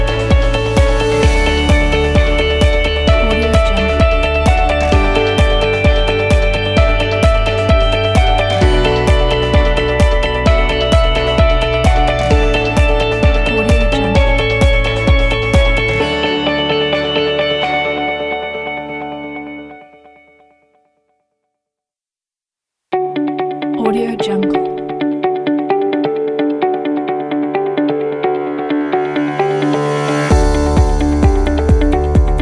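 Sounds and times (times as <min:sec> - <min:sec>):
corporate motivational music: 0:00.0 - 0:19.8, 0:23.3 - 0:32.4.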